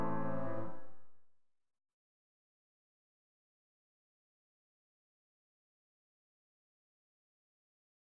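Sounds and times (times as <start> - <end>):
waltz music: 0.0 - 0.8.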